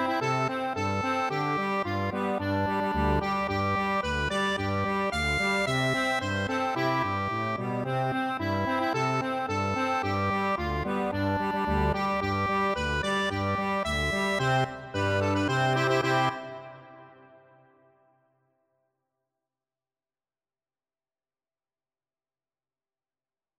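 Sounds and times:
accordion: 0.0s - 17.6s.

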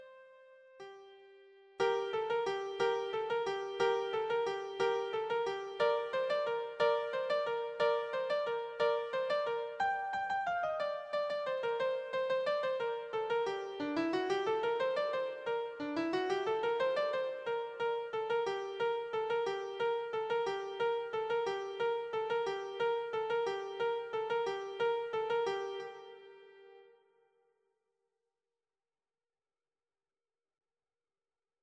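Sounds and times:
keyboard playing a carol: 1.8s - 26.8s.

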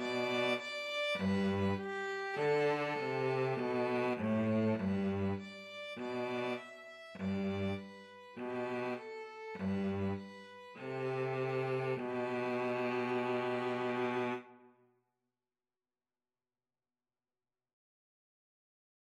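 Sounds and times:
violin and cello duet: 0.0s - 14.5s.

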